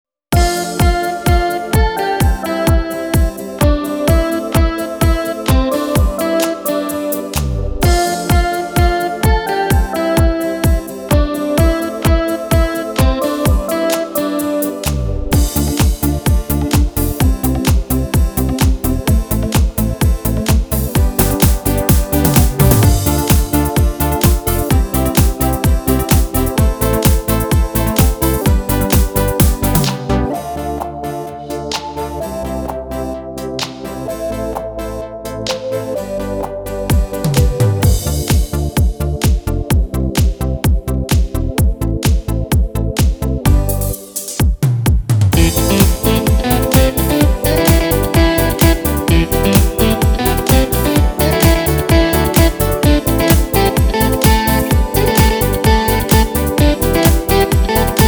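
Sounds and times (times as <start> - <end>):
beat: 0.4 - 32.8, 35.5 - 58.0.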